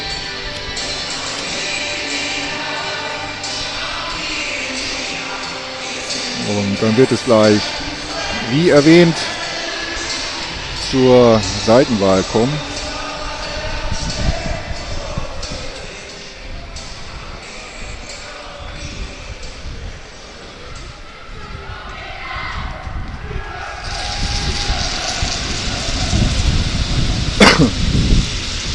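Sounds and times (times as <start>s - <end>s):
strong wind blowing into the microphone: 6.3s - 28.7s
speech: 6.5s - 7.8s, 8.5s - 9.4s, 10.9s - 12.7s.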